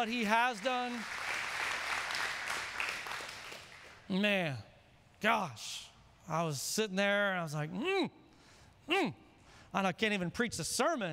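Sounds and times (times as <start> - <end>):
speech: 0.0 - 1.4, 4.1 - 8.2, 8.9 - 11.1
church congregation clapping: 0.0 - 4.1.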